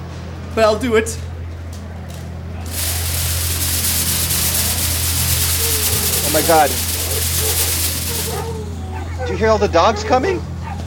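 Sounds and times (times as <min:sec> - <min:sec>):
speech: 0:00.6 - 0:01.3, 0:06.3 - 0:06.9, 0:09.2 - 0:10.5
sugar being poured: 0:02.7 - 0:08.5.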